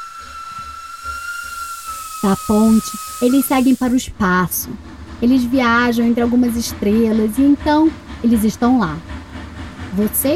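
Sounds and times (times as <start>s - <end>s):
train whistle blowing: 0.0s - 4.1s
low train chugging: 0.0s - 10.3s
steam hissing: 0.0s - 10.3s
speech: 2.2s - 9.1s, 10.0s - 10.3s.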